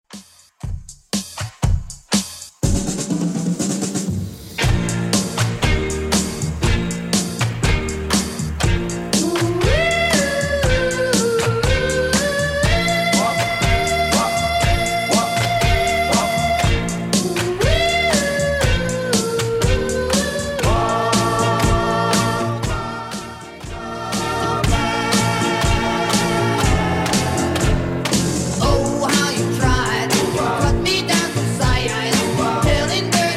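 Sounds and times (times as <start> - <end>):
1970s Redrum drum machine beat at 120 bpm: 0.1 - 33.3.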